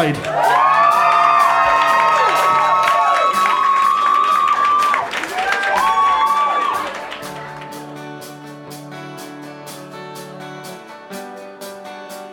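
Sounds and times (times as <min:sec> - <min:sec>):
audience applause and cheering as a local band is welcomed onto the stage: 0:00.0 - 0:08.6
high shouted whoops: 0:00.2 - 0:07.2.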